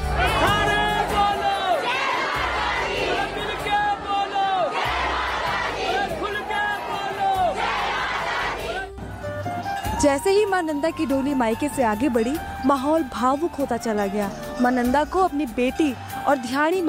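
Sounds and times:
crowd of devotees chanting religious slogans: 0:00.1 - 0:09.1
speech: 0:10.0 - 0:16.8.

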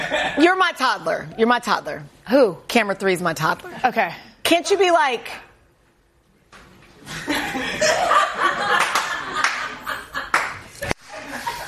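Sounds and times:
speech: 0:00.2 - 0:05.5
people laughing loudly: 0:07.1 - 0:11.6
hand claps: 0:08.8 - 0:10.7.

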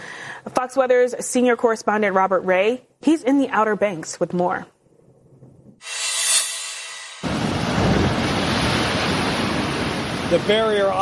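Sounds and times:
speech: 0:00.6 - 0:04.8, 0:10.3 - 0:11.0
Atlantic ocean waves crashing on shore: 0:07.2 - 0:11.0.

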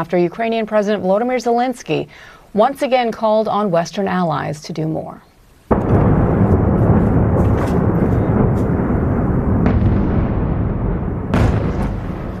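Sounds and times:
speech: 0:00.0 - 0:05.3
missile and drone explosions over Kyiv: 0:05.7 - 0:12.3.

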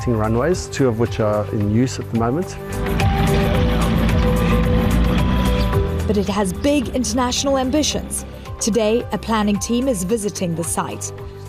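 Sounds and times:
speech: 0:00.0 - 0:03.0, 0:06.1 - 0:11.4
light aircraft engine droning at airstrip: 0:02.6 - 0:07.4.

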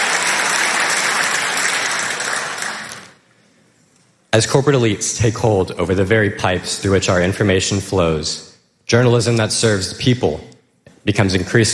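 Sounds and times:
crowd applauding: 0:00.0 - 0:03.2
speech: 0:04.4 - 0:11.7.

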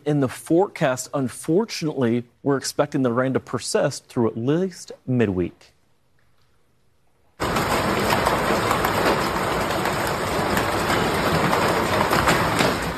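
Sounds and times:
speech: 0:00.1 - 0:05.7
hail pummeling in a severe storm: 0:07.4 - 0:12.9.

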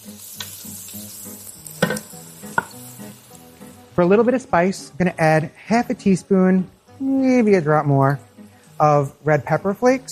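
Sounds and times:
garlic sizzling in a pan: 0:00.0 - 0:10.1
speech: 0:04.0 - 0:10.1.

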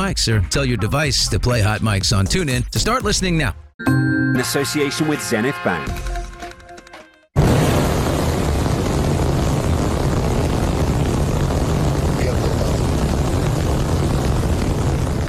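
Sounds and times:
speech: 0:00.0 - 0:06.2
Starship rocket launch with Raptor engines roaring: 0:07.4 - 0:15.2.

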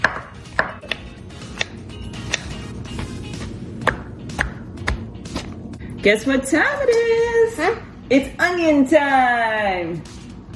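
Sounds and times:
knife slicing mushrooms thinly: 0:00.0 - 0:03.1
speech: 0:06.0 - 0:10.1.

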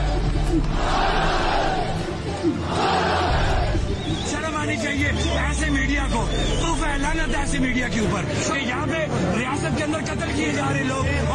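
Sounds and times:
street protesters chanting revolutionary slogans against the army: 0:00.0 - 0:05.4
speech: 0:00.6 - 0:00.9, 0:04.7 - 0:11.3.

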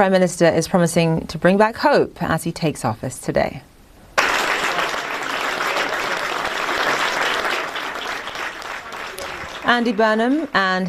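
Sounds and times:
speech: 0:00.0 - 0:03.7, 0:09.7 - 0:10.8
loud applause at 10 Downing Street: 0:04.2 - 0:10.8.

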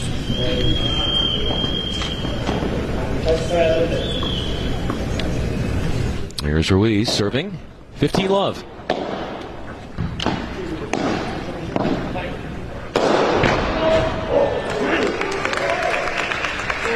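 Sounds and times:
tennis crowd noise: 0:00.0 - 0:16.9
speech: 0:00.4 - 0:01.6, 0:03.3 - 0:04.1, 0:06.4 - 0:09.2
full-power flat smash with a tennis racket: 0:12.9 - 0:13.8.

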